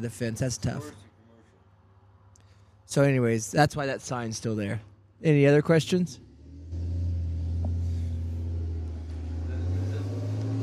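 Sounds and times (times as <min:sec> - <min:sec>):
speech: 0:00.0 - 0:01.1, 0:02.9 - 0:06.2
Dodge Ram pickup truck driving by on Route 66: 0:06.2 - 0:10.6.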